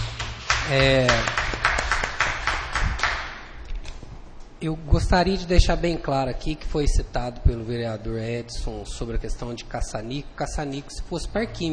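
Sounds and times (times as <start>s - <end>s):
small group clapping in a council chamber: 0.0s - 3.5s
speech: 0.7s - 1.4s, 4.6s - 11.7s.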